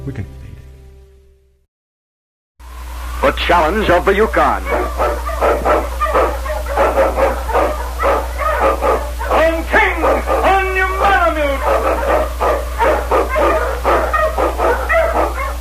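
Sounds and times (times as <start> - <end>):
speech: 0.0 - 0.4, 3.2 - 5.7
steady low hum: 2.6 - 15.5
pack of sled dogs barking and yipping: 3.1 - 15.5.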